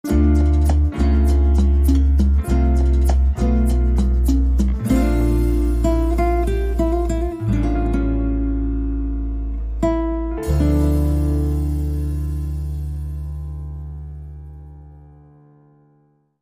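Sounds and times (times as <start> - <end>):
Latin ballad: 0.0 - 15.6.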